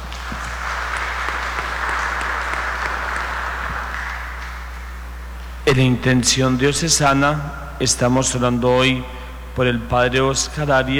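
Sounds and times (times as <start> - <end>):
audience applause: 0.0 - 5.0
speech: 5.7 - 10.9.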